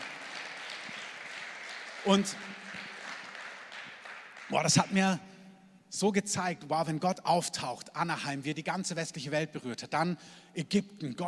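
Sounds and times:
audience applause: 0.0 - 4.9
speech: 2.0 - 2.6, 4.5 - 5.3, 5.9 - 11.2.

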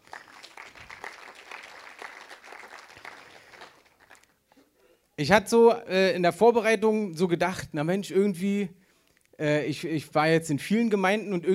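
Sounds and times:
audience applause: 0.0 - 4.3
speech: 5.2 - 8.8, 9.4 - 11.5.

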